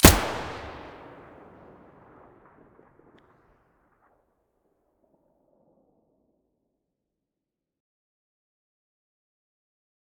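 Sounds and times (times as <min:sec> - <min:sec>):
Vihr weapon muzzle gunshots: 0:00.0 - 0:01.6.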